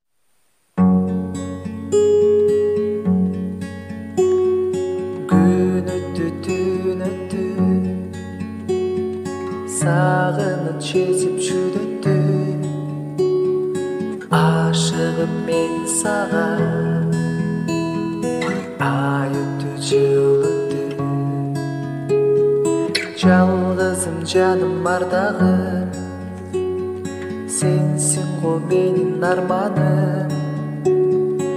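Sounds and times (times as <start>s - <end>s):
guitar: 0.3s - 31.5s.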